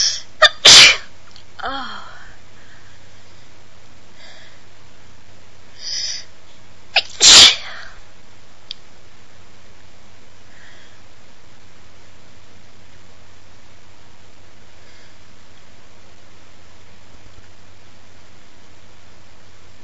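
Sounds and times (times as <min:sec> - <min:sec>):
woman sneezing loudly like a hurricane: 0:00.0 - 0:01.1, 0:07.0 - 0:07.8.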